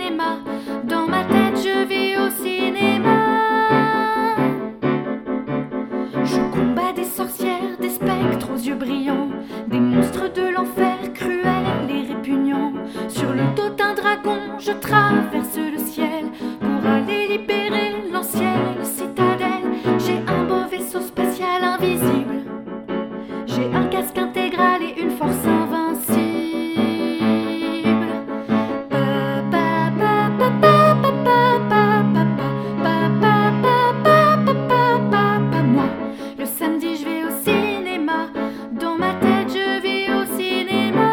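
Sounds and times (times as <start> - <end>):
chanting with piano: 0.0 - 41.1.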